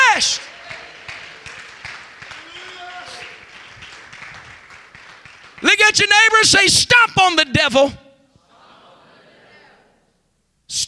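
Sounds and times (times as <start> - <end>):
crowd clapping hands in a large room: 0.0 - 6.4
speech: 0.2 - 0.5, 6.0 - 8.0.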